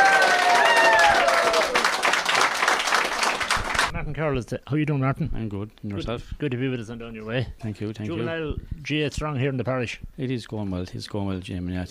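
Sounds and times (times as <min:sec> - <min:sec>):
audience applause at a community gathering in County Tipperary: 0:00.0 - 0:03.9
speech: 0:04.2 - 0:11.9.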